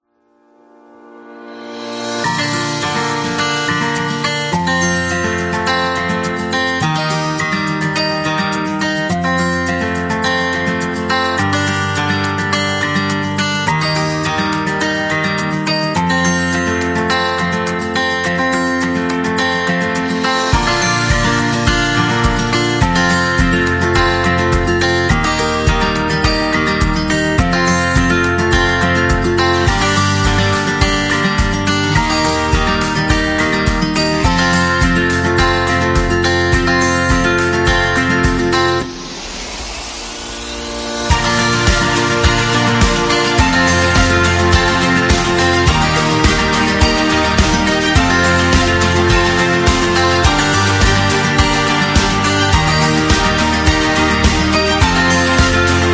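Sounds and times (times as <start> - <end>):
elegant corporate background music: 1.9 - 39.0, 40.9 - 55.9.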